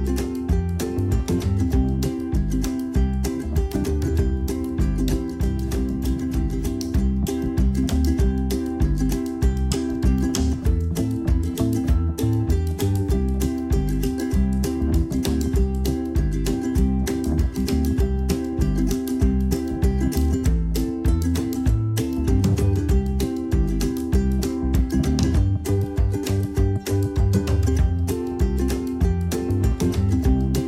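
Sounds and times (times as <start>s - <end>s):
teaser music: 0.0s - 30.6s.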